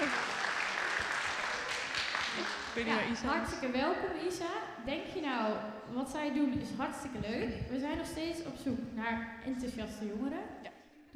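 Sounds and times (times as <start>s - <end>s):
group applause welcoming a new member to a youth team: 0.0s - 3.5s
speech: 2.8s - 11.1s.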